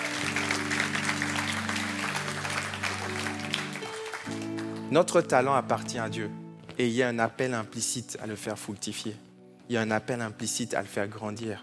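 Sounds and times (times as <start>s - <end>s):
audience applause: 0.0s - 4.9s
speech: 4.9s - 11.6s.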